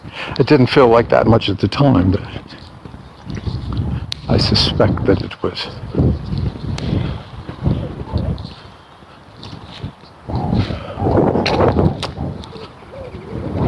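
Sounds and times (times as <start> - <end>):
speech: 0.0 - 2.6, 4.3 - 6.6
wind gusting across a microphone in a park beside a concrete path: 0.0 - 13.6.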